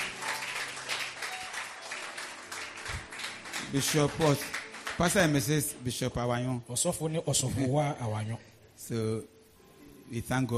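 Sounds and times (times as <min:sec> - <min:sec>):
crowd applauding: 0:00.0 - 0:05.5
speech: 0:03.7 - 0:09.4, 0:10.1 - 0:10.5.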